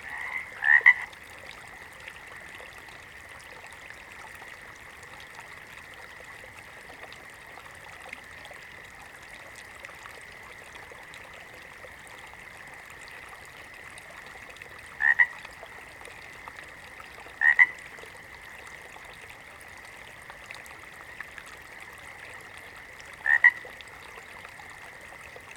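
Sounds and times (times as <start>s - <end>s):
water frog double croaks: 0.0s - 1.2s, 15.0s - 15.5s, 17.3s - 17.9s, 23.2s - 23.8s.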